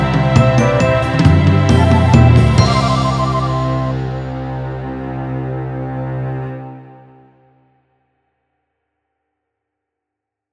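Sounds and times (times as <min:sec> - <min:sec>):
orchestra: 0:00.0 - 0:07.5.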